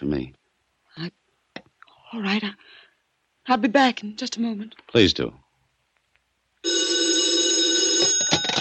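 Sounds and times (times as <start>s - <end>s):
speech: 0.0s - 0.4s, 1.0s - 1.2s, 2.1s - 2.8s, 3.5s - 5.4s
telephone ringing: 6.6s - 8.6s.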